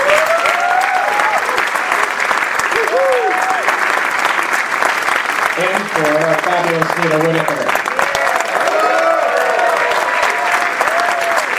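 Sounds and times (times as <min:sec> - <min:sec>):
audience applause: 0:00.0 - 0:11.5
speech: 0:05.6 - 0:07.8.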